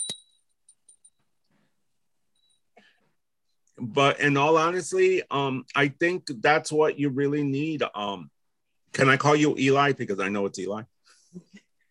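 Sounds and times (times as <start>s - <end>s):
small elephant bell ringing: 0.0s - 1.2s
speech: 3.8s - 11.6s.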